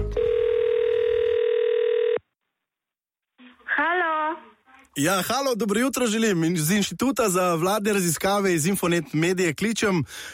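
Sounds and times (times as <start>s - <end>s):
telephone dial tone: 0.2s - 2.3s
speech: 5.0s - 10.3s.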